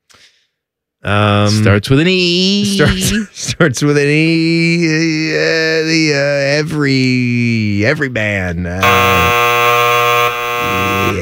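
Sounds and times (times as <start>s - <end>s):
speech: 1.0s - 9.8s
two game show buzzers: 8.8s - 11.1s.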